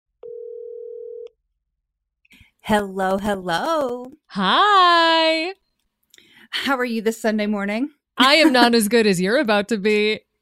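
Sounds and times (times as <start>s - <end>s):
telephone dial tone while placing a call: 0.2s - 1.4s
speech: 2.6s - 5.6s, 6.5s - 10.3s.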